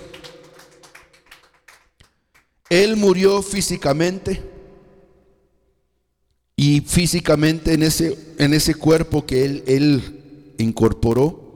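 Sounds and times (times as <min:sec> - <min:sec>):
church congregation clapping rhythmically in praise of the Lord: 0:00.0 - 0:03.3
speech: 0:02.7 - 0:04.5, 0:06.8 - 0:11.4.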